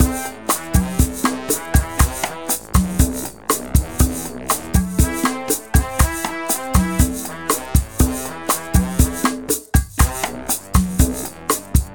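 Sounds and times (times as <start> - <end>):
salsa music: 0.0 - 11.9.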